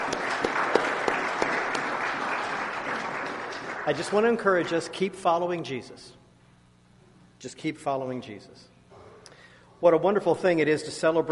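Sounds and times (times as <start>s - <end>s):
audience applause: 0.0s - 4.8s
speech: 3.9s - 6.2s, 7.4s - 8.7s, 9.8s - 11.3s.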